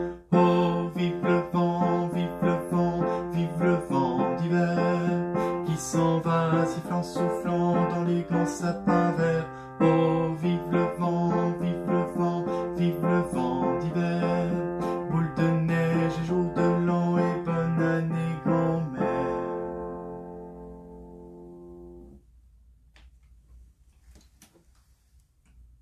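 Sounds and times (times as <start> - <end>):
alto and bass voices singing: 0.0 - 19.8.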